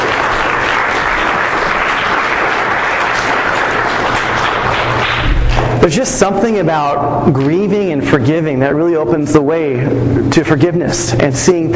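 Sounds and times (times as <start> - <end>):
applause: 0.0 - 5.7
speech: 5.8 - 11.7.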